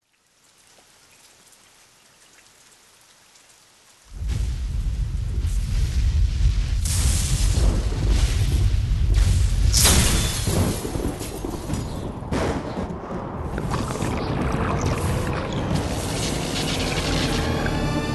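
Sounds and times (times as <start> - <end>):
THX thunder: 4.1 - 18.0.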